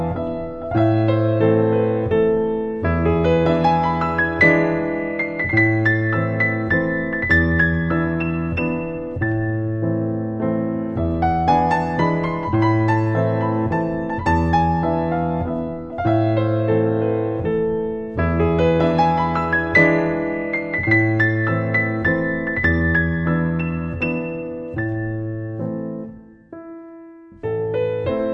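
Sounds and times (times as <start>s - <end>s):
waltz in A minor on piano: 0.0s - 28.3s.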